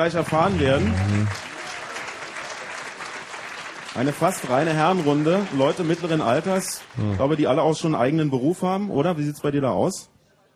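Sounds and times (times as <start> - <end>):
speech: 0.0 - 1.5, 4.0 - 10.1
crowd applause for a quiz team: 0.0 - 7.5.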